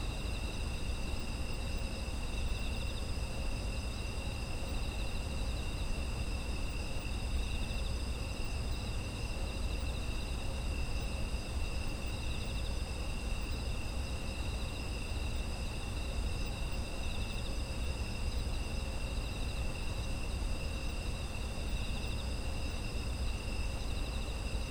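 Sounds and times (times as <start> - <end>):
insects trilling: 0.0 - 24.6.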